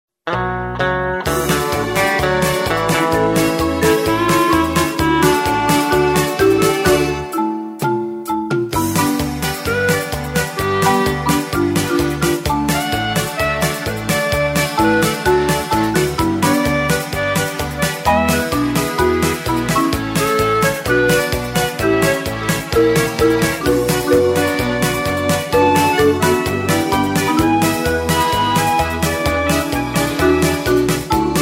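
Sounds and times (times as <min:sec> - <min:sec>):
music: 0:00.2 - 0:31.3.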